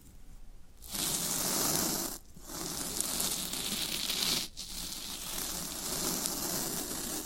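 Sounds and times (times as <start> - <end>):
floral foam crackling and crunching: 0.8 - 7.2.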